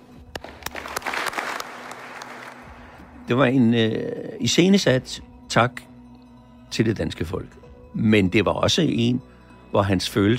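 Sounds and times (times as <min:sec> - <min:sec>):
applause: 0:00.3 - 0:03.0
speech: 0:03.3 - 0:05.9, 0:06.7 - 0:10.3.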